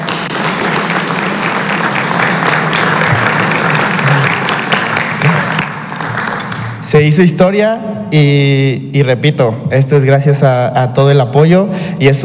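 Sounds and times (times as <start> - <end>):
applause: 0.0 - 6.9
speech: 6.9 - 12.2.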